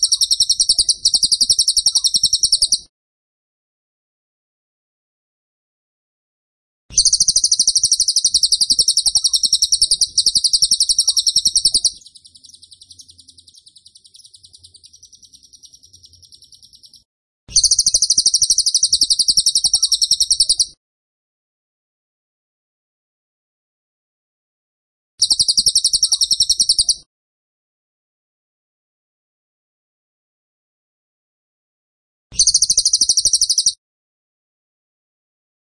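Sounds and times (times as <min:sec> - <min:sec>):
bird chirping: 0:00.0 - 0:02.9, 0:06.9 - 0:20.8, 0:25.2 - 0:27.0, 0:32.4 - 0:33.8.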